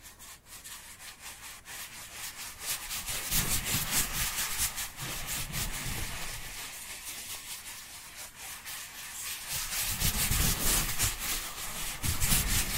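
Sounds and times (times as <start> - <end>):
dry hands rubbing together: 0.0 - 12.7.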